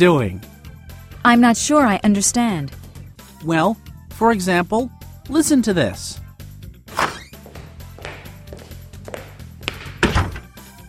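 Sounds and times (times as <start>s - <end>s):
speech: 0.0s - 0.5s, 1.2s - 2.8s, 3.4s - 6.2s
man opening a door: 6.9s - 7.4s, 9.8s - 10.6s
man walking into a room: 7.0s - 10.4s.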